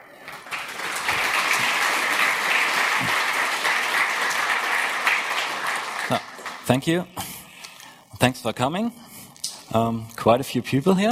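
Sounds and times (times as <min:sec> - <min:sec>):
audience applause: 0:00.0 - 0:06.8
speech: 0:06.1 - 0:07.2, 0:08.2 - 0:09.0, 0:09.7 - 0:11.1.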